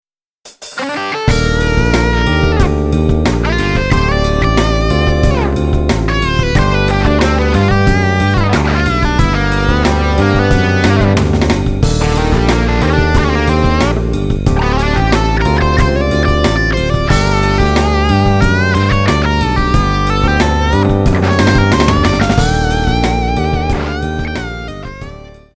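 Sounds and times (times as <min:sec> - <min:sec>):
synth patch demo: 0:00.8 - 0:25.5.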